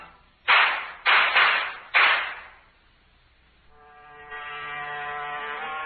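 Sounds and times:
gunshots: 0:00.5 - 0:02.6.

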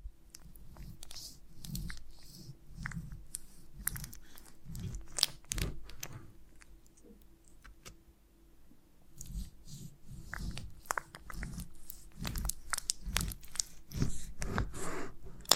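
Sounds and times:
person biting and chewing honeycomb: 0:00.4 - 0:07.8, 0:10.2 - 0:14.5.

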